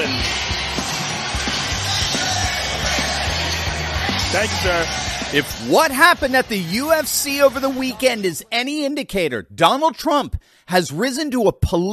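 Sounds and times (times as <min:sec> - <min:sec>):
crowd applause: 0:00.0 - 0:08.3
speech: 0:04.3 - 0:11.9.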